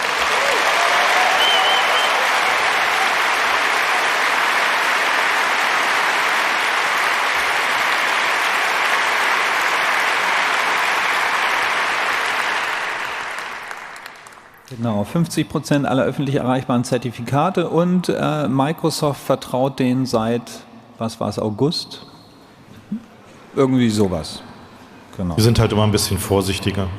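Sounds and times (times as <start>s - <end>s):
audience applause: 0.0s - 14.6s
speech: 15.1s - 22.1s, 22.9s - 24.5s, 25.2s - 26.9s.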